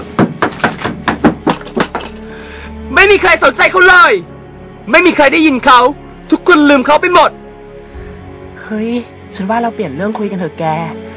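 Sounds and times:
pounding on objects to make noise: 0.0 - 2.2
speech: 2.9 - 7.4, 8.7 - 11.1.

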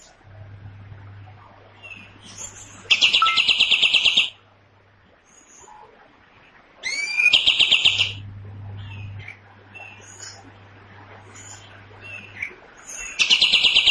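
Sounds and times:
cream-vented bulbul rattling song: 1.8 - 4.4, 6.8 - 8.2, 8.8 - 10.5, 11.3 - 13.9.

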